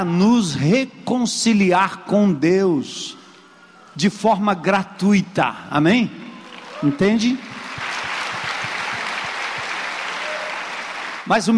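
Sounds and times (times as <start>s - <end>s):
speech: 0.0s - 3.2s, 4.0s - 6.2s, 6.8s - 7.5s, 11.3s - 11.5s
audience applause: 6.3s - 11.3s.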